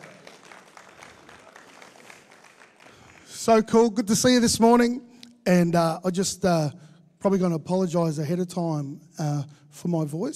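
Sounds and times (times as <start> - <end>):
church congregation applauding the worship team: 0.0 - 4.4
speech: 3.4 - 10.3.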